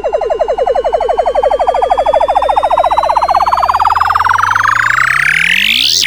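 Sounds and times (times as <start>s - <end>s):
long sweeps: 0.2s - 6.0s.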